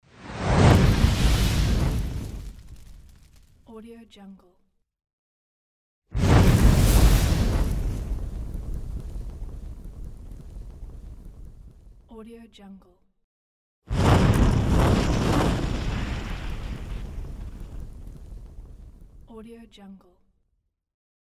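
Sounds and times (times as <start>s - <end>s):
fireball whoosh transitions: 0.0s - 3.6s, 6.1s - 12.0s, 13.9s - 19.3s.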